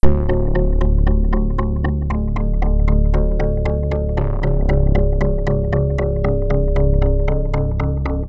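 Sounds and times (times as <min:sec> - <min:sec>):
polyphonic synth: 0:00.0 - 0:08.2.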